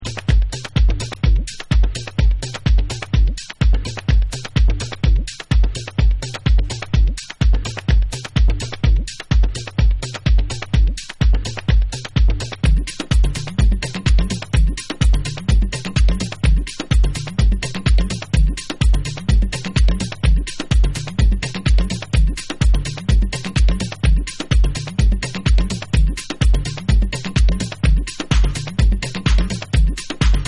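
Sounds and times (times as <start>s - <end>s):
beats: 0.0s - 30.4s.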